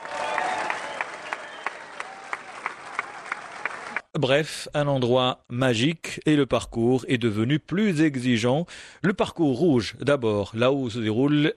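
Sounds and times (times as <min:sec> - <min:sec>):
spectators applauding at a golf course: 0:00.0 - 0:04.1
speech: 0:04.2 - 0:11.5.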